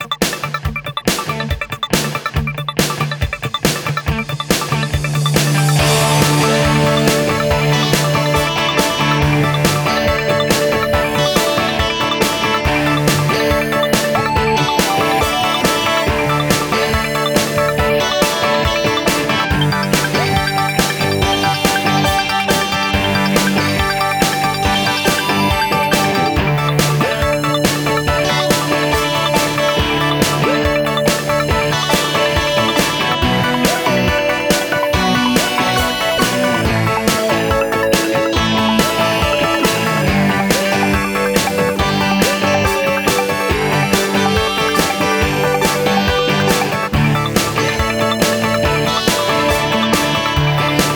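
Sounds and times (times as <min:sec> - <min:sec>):
80s pop music: 0:00.2 - 0:50.9.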